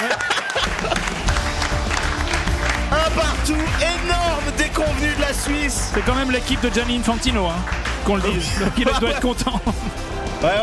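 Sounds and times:
laughter: 0.0s - 1.4s, 8.0s - 10.0s
crowd applauding the Qatar team at the final whistle of a World Cup match against Switzerland: 0.0s - 10.3s
speech: 5.4s - 10.6s.

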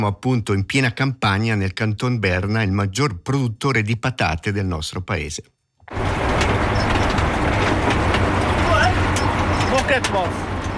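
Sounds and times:
speech: 0.0s - 6.2s, 9.9s - 10.5s
tractor pulling a potato harvester in a Bernese field: 5.9s - 10.7s.

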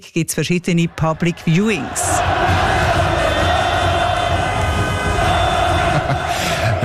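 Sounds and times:
speech: 0.0s - 2.7s
hundreds of football fans celebrating: 0.6s - 6.8s
laughter: 2.6s - 6.8s.

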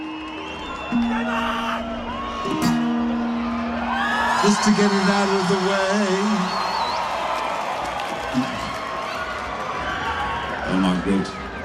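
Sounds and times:
high whistle-like tone: 0.0s - 1.9s
concert crowd cheering: 0.0s - 11.6s
speech: 0.9s - 1.6s, 4.4s - 6.6s, 10.8s - 11.4s.

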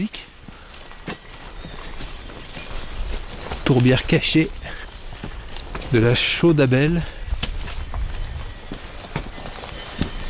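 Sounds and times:
speech: 0.0s - 0.3s, 3.7s - 4.6s, 5.9s - 7.2s
footsteps in a wild peat bog among blueberry plants: 0.0s - 10.2s
light rustling of blueberry plants: 0.3s - 10.2s.

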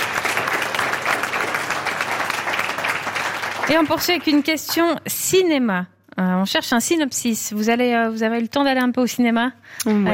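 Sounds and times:
audience applause for the guest: 0.0s - 4.8s
speech: 3.7s - 10.1s.

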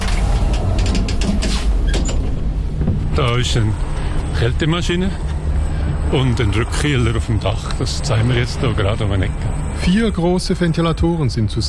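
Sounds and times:
elevator doors sliding: 0.0s - 7.2s
elevator running: 0.0s - 11.0s
speech: 3.2s - 5.3s, 6.1s - 11.6s.

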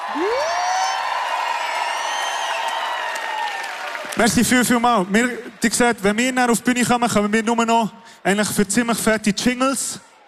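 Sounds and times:
audience applause and cheering: 0.0s - 6.6s
speech: 0.2s - 0.5s, 4.2s - 10.1s.

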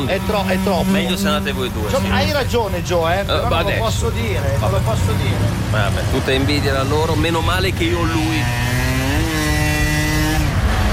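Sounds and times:
Vespa scooter engine droning: 0.0s - 2.4s, 4.7s - 10.9s
speech: 0.0s - 8.8s.

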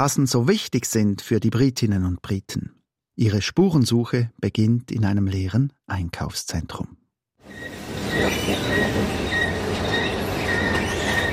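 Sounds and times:
speech: 0.0s - 9.4s
squeaking escalator in a shopping centre: 7.4s - 11.3s.

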